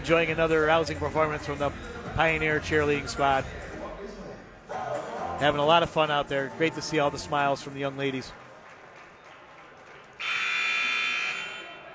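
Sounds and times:
speech: 0:00.0 - 0:03.6, 0:05.4 - 0:08.4
basketball game horn buzzer: 0:10.2 - 0:11.9.

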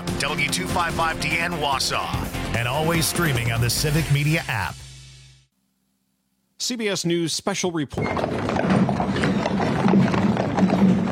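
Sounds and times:
speech: 0:00.2 - 0:04.9, 0:06.6 - 0:08.6
horse hooves clip-clopping pulling a caisson: 0:08.0 - 0:11.1.

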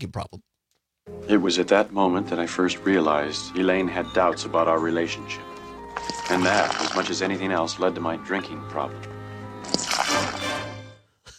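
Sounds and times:
speech: 0:00.0 - 0:00.5, 0:01.1 - 0:10.3
Gatorade pouring into a cup: 0:06.0 - 0:07.2, 0:09.6 - 0:10.6.

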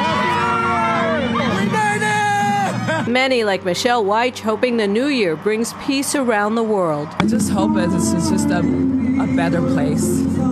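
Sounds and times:
whoops: 0:00.0 - 0:03.0
New Year's Eve crowd cheering and shouting in Times Square: 0:00.0 - 0:03.2
speech: 0:03.1 - 0:10.5.

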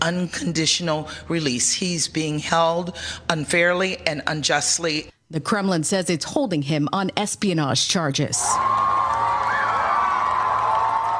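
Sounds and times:
speech: 0:00.0 - 0:08.8
crowd cheering Evans Chebet winning the Boston Marathon: 0:08.4 - 0:11.1.

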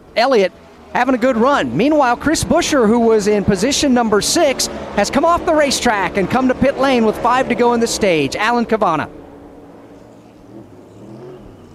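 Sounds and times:
speech: 0:00.2 - 0:09.2
NASCAR Ford Mustang race car engine pulling away from pit box: 0:00.3 - 0:11.7.

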